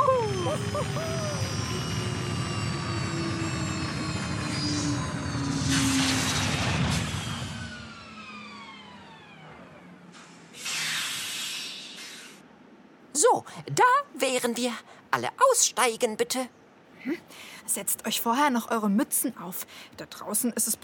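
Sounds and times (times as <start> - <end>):
laughter: 0.0 - 1.4
flying circus wagon landing: 0.0 - 12.4
speech: 13.3 - 20.8.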